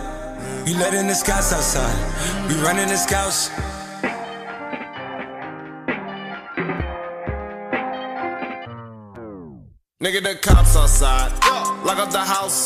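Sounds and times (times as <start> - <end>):
TikTok ringtone: 0.8 - 8.8, 11.1 - 12.6.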